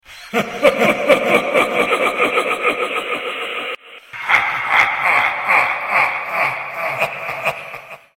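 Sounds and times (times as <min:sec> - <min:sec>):
person laughing: 0:00.1 - 0:08.1.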